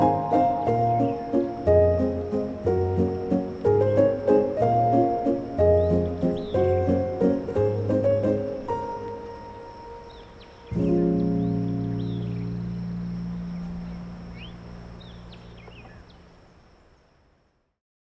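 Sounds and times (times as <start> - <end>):
relaxing piano music: 0.0 - 16.1.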